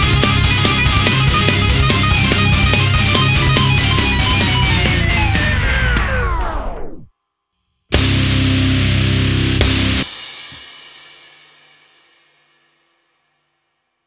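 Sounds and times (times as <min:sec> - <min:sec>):
guitar chase music: 0:00.0 - 0:07.1, 0:07.9 - 0:10.2.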